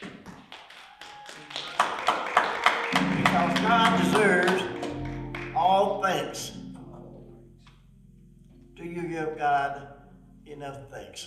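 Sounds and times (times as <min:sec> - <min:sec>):
audience round of applause: 0:00.0 - 0:05.9
speech: 0:09.5 - 0:11.2.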